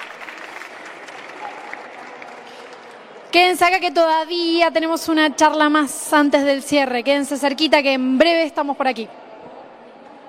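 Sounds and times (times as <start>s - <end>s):
audience applause: 0.0s - 3.3s
speech: 3.3s - 9.2s.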